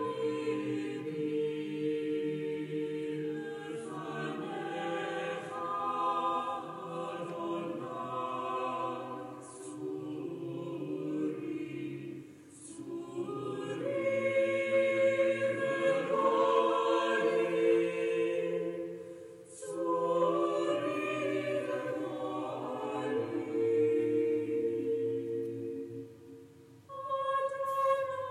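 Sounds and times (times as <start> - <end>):
choir singing: 0.0 - 28.2.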